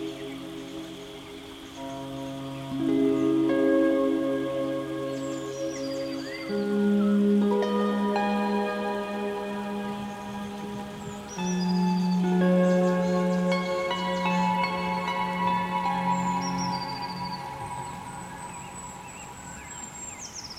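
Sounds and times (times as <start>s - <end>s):
tropical harp music: 0.0s - 20.1s.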